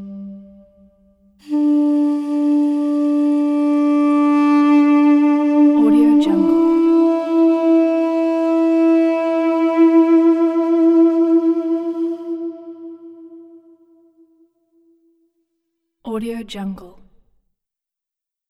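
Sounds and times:
duduk flute solo: 0:00.0 - 0:14.4.

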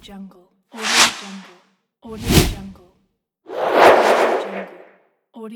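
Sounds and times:
whoosh: 0:00.8 - 0:01.5, 0:03.5 - 0:04.9.

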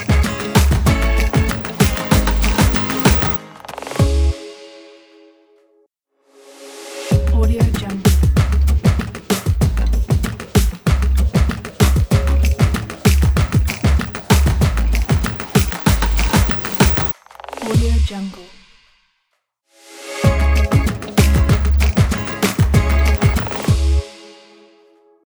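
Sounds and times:
latin percussion ident: 0:00.0 - 0:04.7, 0:07.0 - 0:17.9, 0:20.2 - 0:24.0.

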